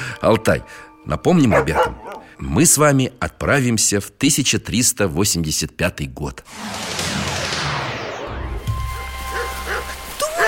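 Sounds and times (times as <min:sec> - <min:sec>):
speech: 0:00.2 - 0:07.2
rain: 0:08.7 - 0:10.4.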